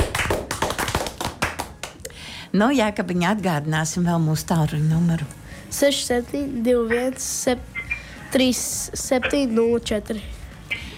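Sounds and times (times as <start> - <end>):
hands clapping: 0.0 - 2.1
speech: 2.5 - 10.4.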